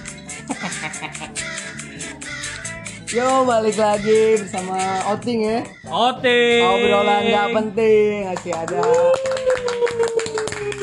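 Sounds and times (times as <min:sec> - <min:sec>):
laughter: 0:00.4 - 0:01.6
speech: 0:00.6 - 0:09.3
hand clapping: 0:04.4 - 0:05.3, 0:08.2 - 0:10.8.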